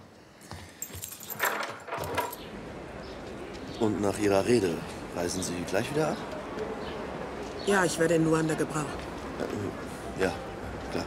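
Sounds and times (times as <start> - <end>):
keys jangling in a door lock: 0.8 - 2.4
speech: 3.8 - 6.9, 7.6 - 11.0.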